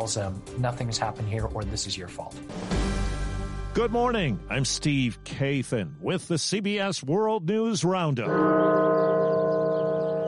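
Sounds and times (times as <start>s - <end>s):
speech: 0.0s - 3.0s, 3.8s - 8.9s
bells ringing at the National Cathedral in Washington: 8.3s - 10.2s.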